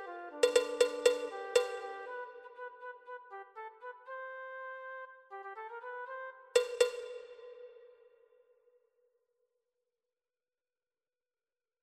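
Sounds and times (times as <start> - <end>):
percussion: 0.0 - 2.5, 6.6 - 8.0.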